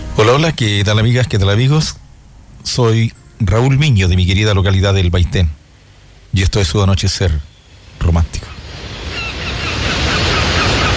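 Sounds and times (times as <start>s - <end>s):
speech: 0.2s - 2.0s, 2.6s - 5.6s, 6.3s - 8.6s
sea waves washing onto a sandy beach: 7.6s - 10.9s.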